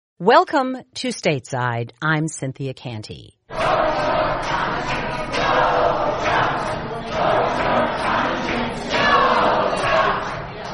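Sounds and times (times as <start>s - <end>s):
speech: 0.2s - 8.1s
protesters shouting in Lansing, Michigan as electors gather: 3.5s - 10.7s.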